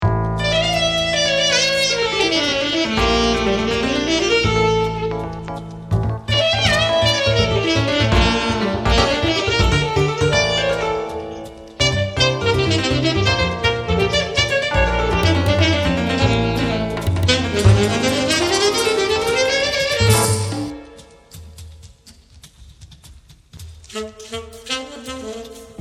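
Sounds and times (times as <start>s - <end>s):
live buleria flamenco saxophone: 0.4s - 21.5s, 23.7s - 25.8s.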